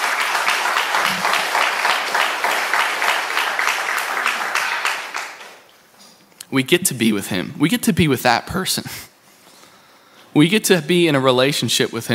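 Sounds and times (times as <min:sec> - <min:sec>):
crowd applause: 0:00.0 - 0:05.6
speech: 0:06.5 - 0:09.1, 0:10.4 - 0:12.1.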